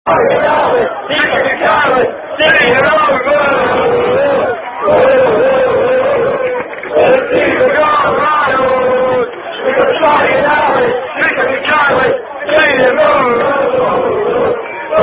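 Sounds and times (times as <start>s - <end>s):
rugby fans singing: 0.1s - 15.0s.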